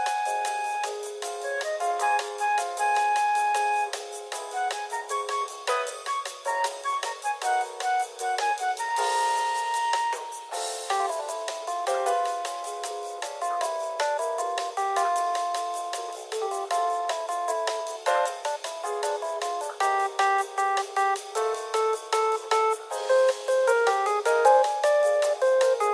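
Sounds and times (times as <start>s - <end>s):
elevator music: 0.0s - 25.9s.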